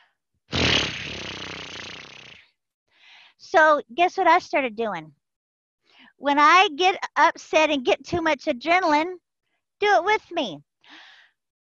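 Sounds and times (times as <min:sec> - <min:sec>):
person imitating a horse blowing out air: 0:00.5 - 0:02.4
speech: 0:03.5 - 0:05.2, 0:06.2 - 0:09.2, 0:09.8 - 0:11.0.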